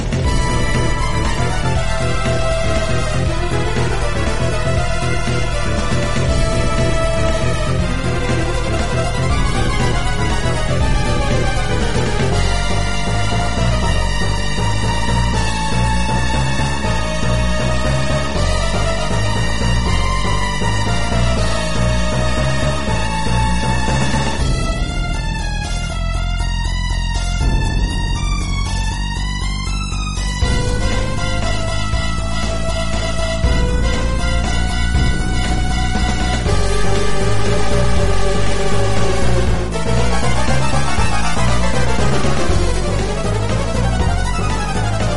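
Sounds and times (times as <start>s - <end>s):
boss battle music: 0.0s - 45.1s.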